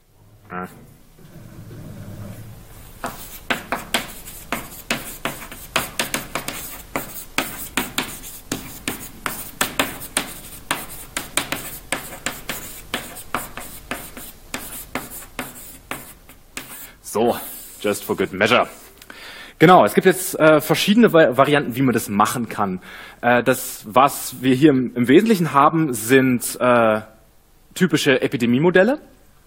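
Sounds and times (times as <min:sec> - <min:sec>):
speech: 0:00.5 - 0:00.9, 0:17.8 - 0:18.8, 0:19.6 - 0:27.1, 0:27.7 - 0:29.2
pen strokes scratching while handwriting a title: 0:03.0 - 0:16.9.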